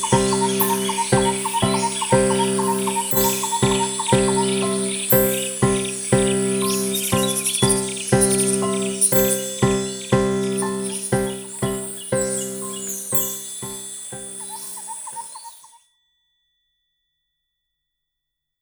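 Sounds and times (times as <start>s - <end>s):
backing music: 0.0s - 14.4s.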